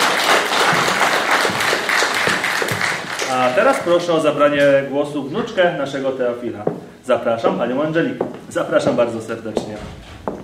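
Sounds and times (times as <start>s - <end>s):
audience applause: 0.0s - 3.9s
speech: 3.3s - 10.1s.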